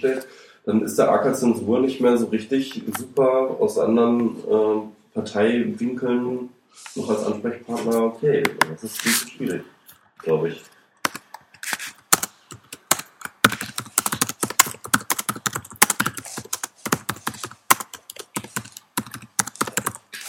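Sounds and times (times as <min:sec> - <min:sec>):
speech: 0:00.0 - 0:10.8
rapid typing on a computer keyboard: 0:12.1 - 0:20.2.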